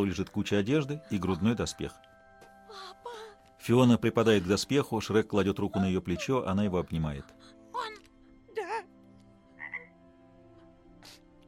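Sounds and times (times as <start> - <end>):
speech: 0.0 - 2.1, 3.6 - 7.9
toad croaking: 9.5 - 10.2.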